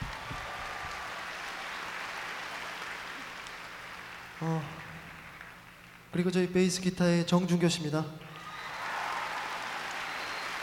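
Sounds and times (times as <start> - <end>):
audience applauding: 0.0 - 6.2, 8.3 - 10.6
speech: 4.4 - 4.8, 6.1 - 8.3.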